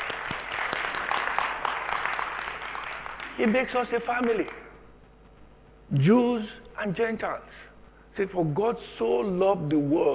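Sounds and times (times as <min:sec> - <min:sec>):
audience applauding: 0:00.0 - 0:04.6
speech: 0:03.4 - 0:04.6, 0:05.9 - 0:07.6, 0:08.2 - 0:10.1.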